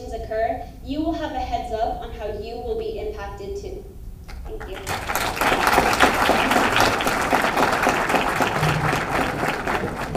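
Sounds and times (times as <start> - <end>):
speech: 0.3 - 6.0
audience applause after a speech: 4.7 - 10.1.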